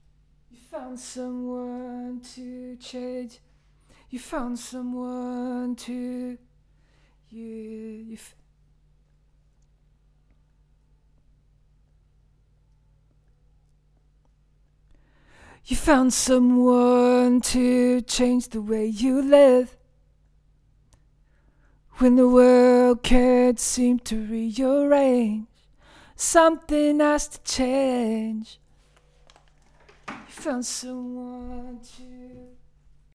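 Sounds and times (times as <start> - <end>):
vocals: 0.0 - 8.8, 14.9 - 20.2, 21.8 - 33.1.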